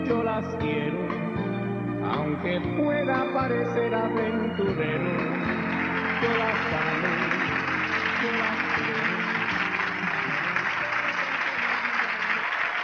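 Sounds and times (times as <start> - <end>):
speech: 0.1 - 1.3, 2.1 - 5.6, 6.2 - 7.4
audience applause after song: 5.2 - 12.8.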